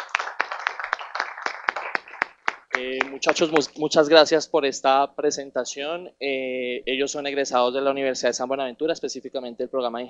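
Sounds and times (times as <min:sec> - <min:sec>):
audience applause: 0:00.0 - 0:03.7
speech: 0:02.8 - 0:10.0.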